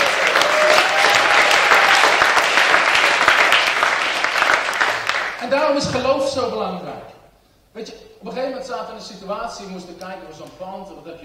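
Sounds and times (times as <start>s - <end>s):
audience applause: 0.0s - 5.4s
speech: 5.7s - 11.2s.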